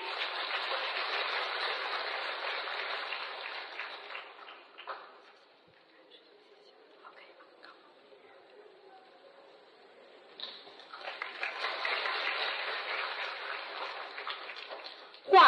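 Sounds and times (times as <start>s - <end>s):
audience applause: 0.0s - 5.4s, 10.4s - 15.4s.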